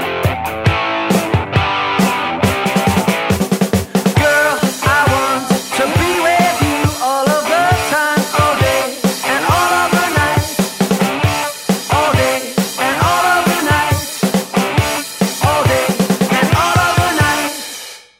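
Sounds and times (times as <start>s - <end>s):
bass backing track: 0.0s - 17.4s.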